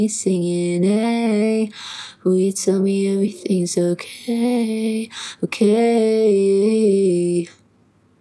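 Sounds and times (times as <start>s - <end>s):
clean vocals: 0.0s - 7.6s.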